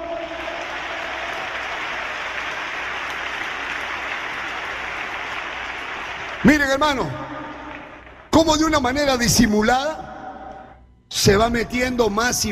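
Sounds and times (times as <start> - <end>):
audience clapping: 0.0 - 8.8
speech: 6.4 - 7.3, 8.4 - 10.0, 11.2 - 12.5.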